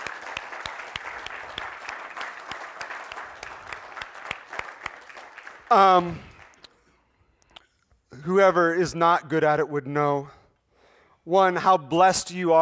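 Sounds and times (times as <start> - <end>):
audience applause: 0.0 - 6.6
speech: 5.7 - 6.3, 8.2 - 10.4, 11.2 - 12.6.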